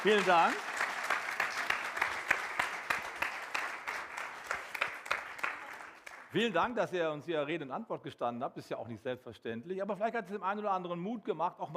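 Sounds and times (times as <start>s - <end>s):
speech: 0.0s - 0.7s, 6.3s - 11.7s
audience applause: 0.0s - 6.3s.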